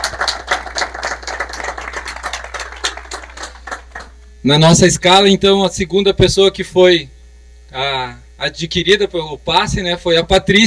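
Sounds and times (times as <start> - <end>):
round of applause: 0.0 - 4.2
speech: 4.4 - 10.6.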